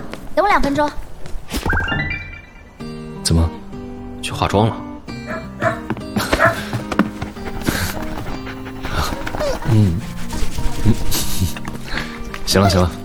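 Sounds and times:
speech: 0.4s - 1.0s, 4.3s - 4.9s, 9.7s - 10.0s, 12.5s - 13.0s
dog barking: 5.2s - 13.0s.

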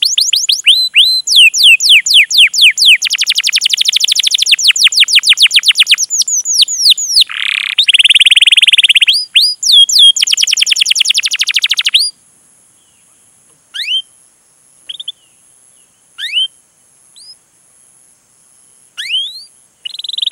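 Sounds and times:
canary singing: 0.0s - 12.1s, 13.7s - 14.2s, 14.8s - 16.6s, 19.0s - 20.3s.

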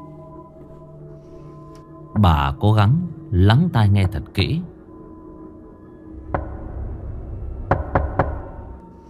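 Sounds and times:
speech: 2.2s - 4.7s
knocking on a door: 6.3s - 6.6s, 7.7s - 8.5s.

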